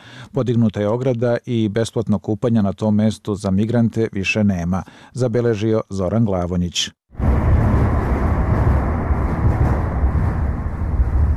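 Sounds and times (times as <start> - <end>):
speech: 0.3 - 7.2
traffic noise from a bridge over the Sava in Belgrade: 7.2 - 11.3.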